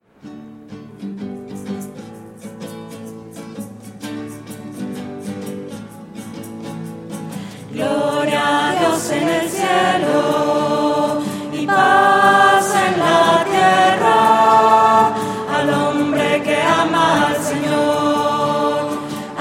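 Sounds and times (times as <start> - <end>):
voices: 7.7 - 19.3.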